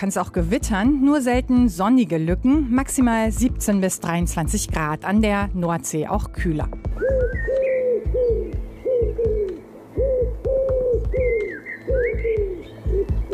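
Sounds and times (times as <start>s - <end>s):
speech: 0.0s - 7.5s
pigeon cooing: 7.0s - 13.3s.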